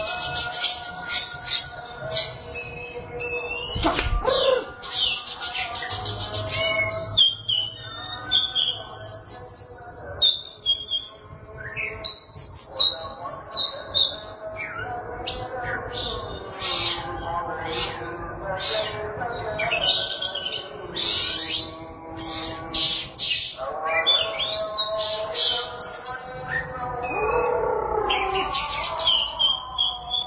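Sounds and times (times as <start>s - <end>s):
Oriental magpie-robin song: 0.0s - 30.2s.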